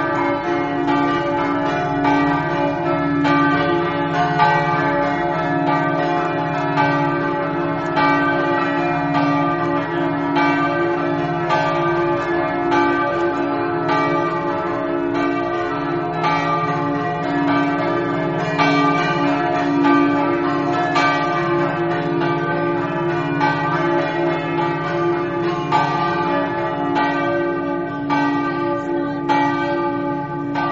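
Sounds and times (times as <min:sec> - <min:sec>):
church bells ringing: 0:00.0 - 0:30.7.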